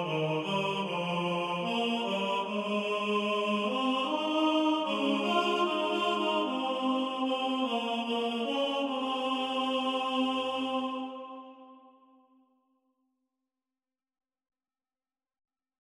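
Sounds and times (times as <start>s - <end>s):
tenor singing: 0.0s - 11.6s.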